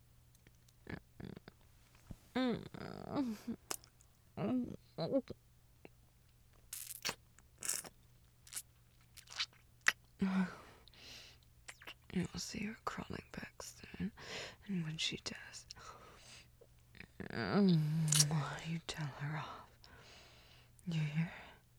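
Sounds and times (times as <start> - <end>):
speech: 2.4 - 3.7, 4.4 - 5.4, 12.2 - 13.8, 14.7 - 15.6, 17.4 - 19.6, 20.9 - 21.4
crunching and chewing food: 6.5 - 10.2.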